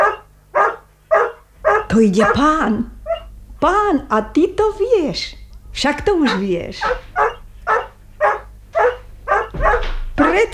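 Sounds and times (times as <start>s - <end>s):
collie dog barking in greeting: 0.0s - 3.3s, 6.2s - 10.5s
speech: 1.9s - 3.0s, 3.6s - 7.3s.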